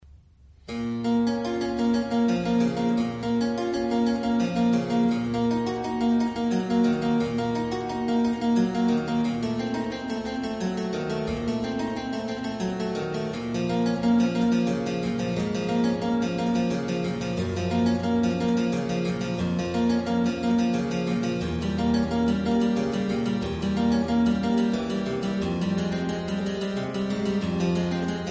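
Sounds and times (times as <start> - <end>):
prelude in C minor: 0.6 - 28.3.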